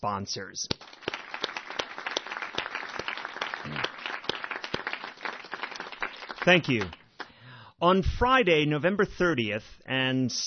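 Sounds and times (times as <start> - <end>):
speech: 0.0 - 1.1, 6.4 - 7.0, 7.8 - 10.4
audience applause: 0.8 - 7.3.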